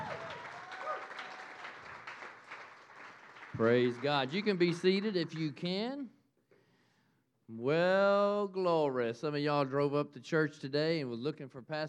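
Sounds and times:
audience clapping hands: 0:00.0 - 0:05.7
speech: 0:03.6 - 0:06.2, 0:07.5 - 0:11.8.

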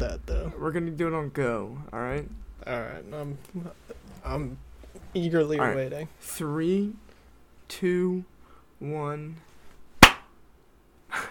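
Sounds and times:
speech: 0:00.0 - 0:07.0, 0:07.7 - 0:09.5
hand clap for audio sync: 0:10.0 - 0:10.3.

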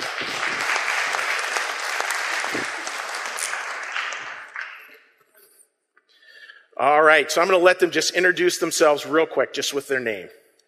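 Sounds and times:
audience round of applause: 0:00.0 - 0:05.0
speech: 0:06.8 - 0:10.4.

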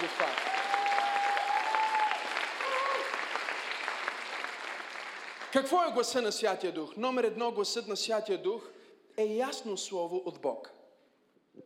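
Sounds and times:
audience applause: 0:00.0 - 0:05.6
whistles and cheers: 0:00.4 - 0:03.4
speech: 0:05.5 - 0:10.8.

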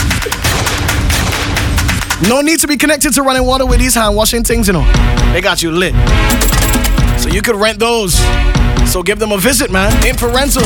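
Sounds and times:
clapping sound effect: 0:00.0 - 0:02.4
speech: 0:02.2 - 0:10.6.

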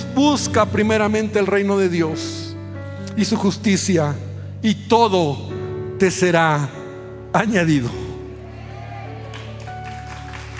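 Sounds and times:
speech: 0:00.2 - 0:02.4, 0:03.2 - 0:08.0
audience applause: 0:08.4 - 0:10.5.

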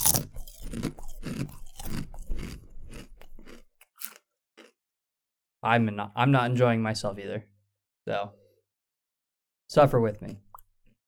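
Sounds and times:
crunching and chewing chips in ASMR style: 0:00.0 - 0:04.8
speech: 0:05.6 - 0:08.4, 0:09.7 - 0:10.4.

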